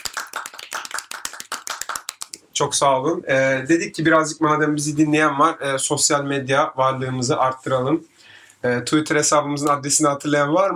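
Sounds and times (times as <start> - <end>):
quiet applause: 0.0 - 2.4
speech: 2.6 - 10.7.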